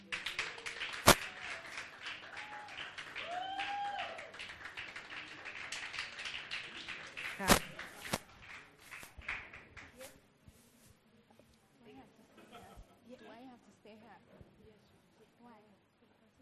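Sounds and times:
crowd applauding: 0.0 - 10.0
whooping cheer: 1.2 - 4.5
laughter: 12.3 - 13.3.

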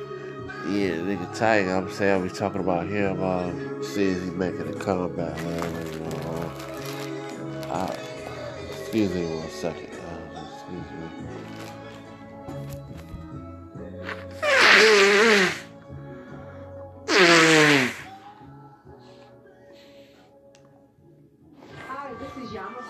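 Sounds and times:
speech: 0.6 - 6.3, 7.7 - 8.1, 8.9 - 9.8
nose blowing: 13.9 - 15.8, 17.1 - 18.3.

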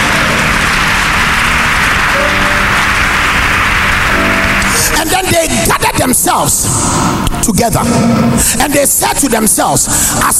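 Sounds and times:
audience clapping: 0.0 - 5.7
speech: 6.1 - 10.3.

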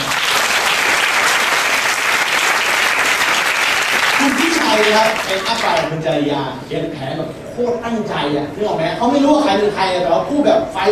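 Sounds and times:
audience applause: 0.0 - 5.9
speech: 4.8 - 10.9.

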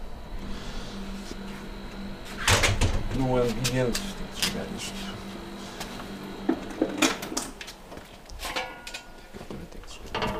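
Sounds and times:
low hum: 0.0 - 10.3
doors of a chamber shutting: 1.7 - 7.6
speech: 3.2 - 5.2.

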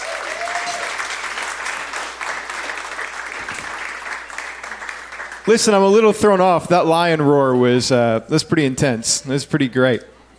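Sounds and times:
audience applauding for children: 0.0 - 6.2
speech: 5.5 - 10.1.

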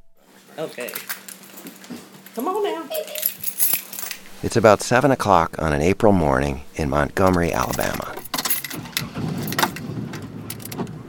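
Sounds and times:
speech: 0.6 - 1.8, 2.4 - 3.5, 4.4 - 8.3
keys jangling while getting into an SUV: 0.8 - 1.9, 2.9 - 4.4, 7.6 - 9.9, 10.5 - 10.8.

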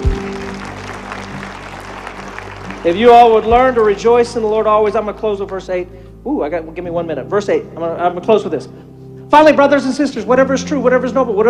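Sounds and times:
audience clapping hands: 0.0 - 5.7
speech: 2.8 - 11.4.

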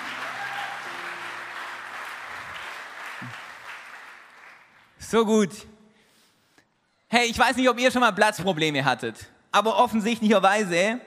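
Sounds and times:
audience applause: 0.0 - 4.9
speech: 3.2 - 3.4, 5.1 - 5.7, 7.1 - 11.0.

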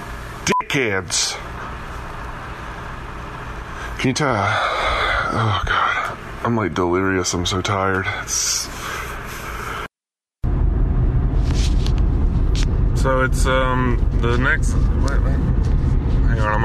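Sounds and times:
speech: 0.5 - 1.5, 4.0 - 8.9, 13.0 - 15.7, 16.4 - 16.6
steady low road rumble inside a moving car: 10.4 - 16.6.

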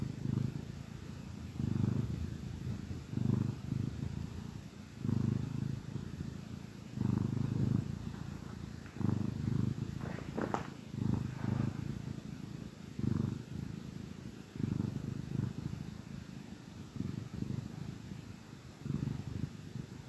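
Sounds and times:
domestic cat purring: 0.0 - 20.0
faint rustling: 7.5 - 12.2.

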